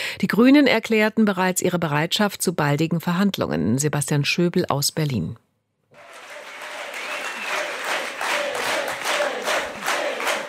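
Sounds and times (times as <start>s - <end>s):
speech: 0.2s - 5.4s
crowd cheering and shouting: 6.0s - 10.4s
frenzied applause at a Left party conference: 6.0s - 10.4s.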